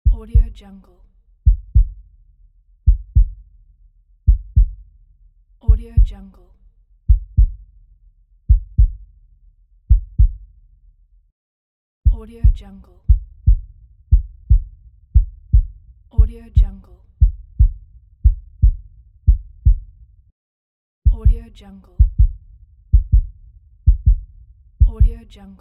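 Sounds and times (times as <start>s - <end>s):
heartbeat: 0.0s - 0.6s, 1.4s - 2.1s, 2.9s - 3.5s, 4.3s - 4.8s, 5.7s - 6.2s, 7.1s - 7.7s, 8.5s - 9.1s, 9.9s - 10.5s, 12.1s - 20.1s, 21.1s - 25.2s.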